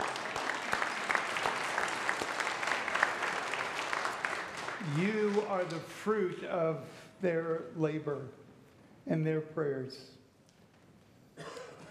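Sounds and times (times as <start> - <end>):
audience applause: 0.0 - 6.1
speech: 4.9 - 8.4, 9.0 - 10.2.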